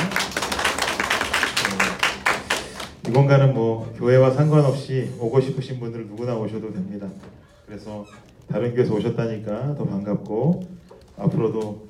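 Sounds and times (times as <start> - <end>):
audience applause welcoming newcomers: 0.0 - 3.0
speech: 3.1 - 11.8.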